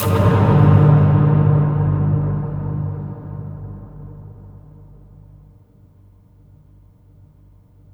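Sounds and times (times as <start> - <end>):
pit hit: 0.0 - 5.2.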